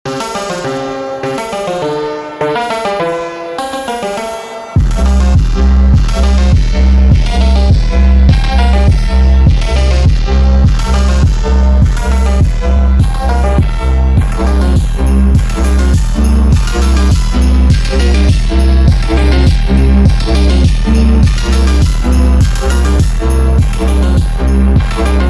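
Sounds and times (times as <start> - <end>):
Christmas phonk 8D remix: 0.1 - 25.2.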